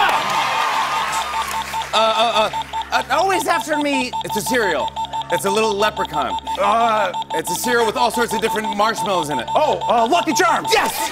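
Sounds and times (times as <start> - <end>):
crowd slow clapping: 0.0 - 3.4
speech: 2.2 - 11.1.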